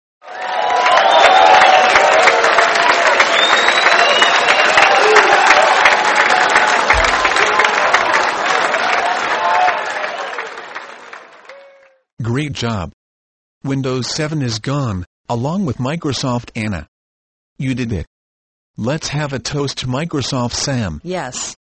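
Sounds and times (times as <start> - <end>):
cheering and whoops: 0.2 - 12.0
crowd applause: 0.2 - 12.0
speech: 12.4 - 13.0, 13.6 - 16.9, 17.6 - 18.1, 18.8 - 21.6.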